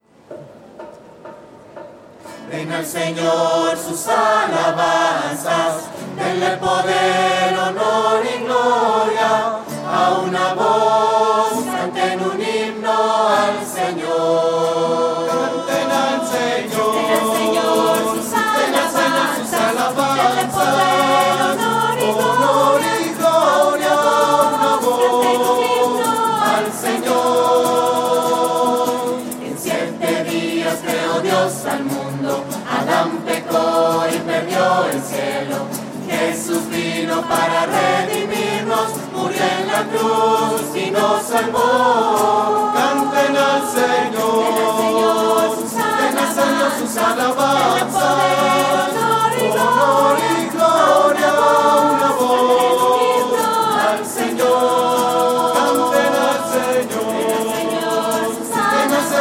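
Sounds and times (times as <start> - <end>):
voices: 2.5 - 59.2.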